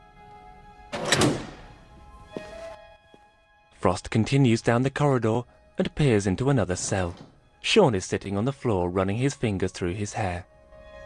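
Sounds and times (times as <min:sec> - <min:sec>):
metal cell door flap sliding open: 0:00.9 - 0:01.8
speech: 0:03.8 - 0:10.5.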